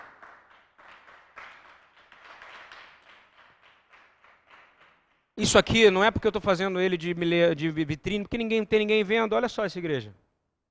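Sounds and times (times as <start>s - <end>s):
audience applauding: 0.0s - 5.3s
speech: 5.4s - 10.2s.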